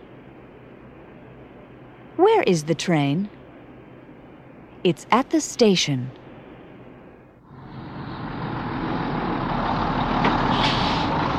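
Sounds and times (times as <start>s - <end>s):
big red English bus engine rumbling: 0.0s - 11.3s
speech: 2.2s - 3.4s, 4.8s - 6.2s
big red English bus air brakes hissing: 10.3s - 11.3s.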